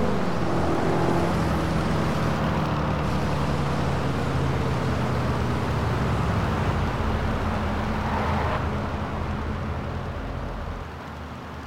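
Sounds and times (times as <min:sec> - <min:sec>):
Chevrolet Corvette C6 Z06 coupe: 0:00.0 - 0:11.6.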